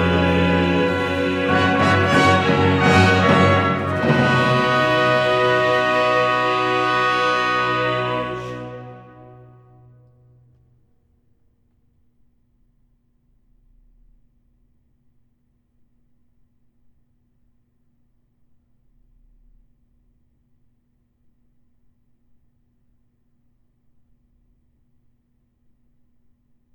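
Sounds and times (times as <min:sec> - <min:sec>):
chorale: 0:00.0 - 0:10.1.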